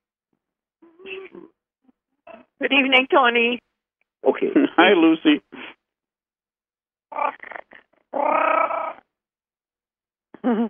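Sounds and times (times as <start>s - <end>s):
speech: 2.6s - 5.6s, 10.4s - 10.6s
cat vocalizing: 7.1s - 9.0s.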